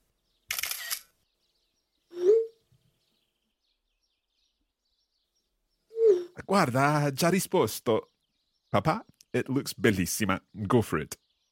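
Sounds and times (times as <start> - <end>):
camera shutter taking photos of a house with a fireplace: 0.5 - 1.1
speech: 6.5 - 8.1, 8.7 - 11.2.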